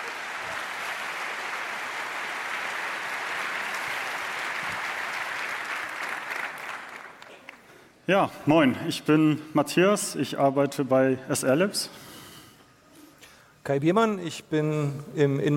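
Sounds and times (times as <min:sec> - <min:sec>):
audience applause: 0:00.0 - 0:07.7
speech: 0:08.1 - 0:12.1, 0:13.6 - 0:15.5.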